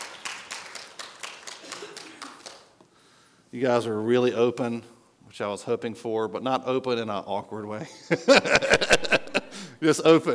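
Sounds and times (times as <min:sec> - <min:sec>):
audience clapping: 0:00.0 - 0:02.8
speech: 0:03.5 - 0:09.1, 0:09.8 - 0:10.3
laughter: 0:07.8 - 0:09.7.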